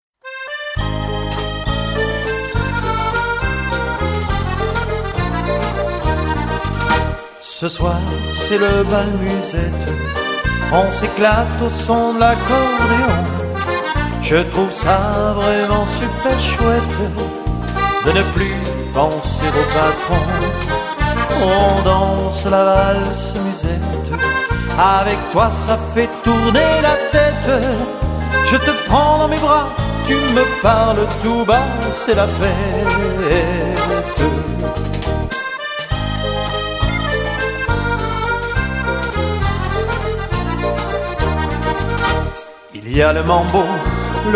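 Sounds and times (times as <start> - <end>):
bal musette music: 0.2 - 44.3.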